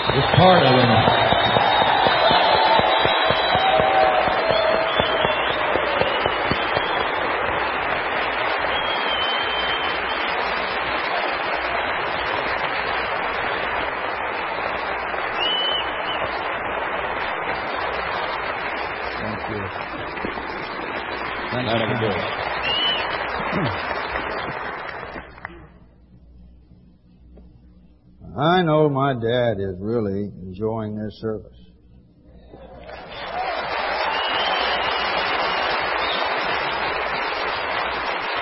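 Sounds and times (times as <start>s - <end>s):
faint whistles and cheers: 0.0s - 13.6s, 15.1s - 16.6s, 21.5s - 25.0s, 32.6s - 38.4s
audience applauding a band: 0.0s - 25.6s, 32.8s - 38.4s
speech: 0.1s - 1.3s, 29.1s - 31.6s.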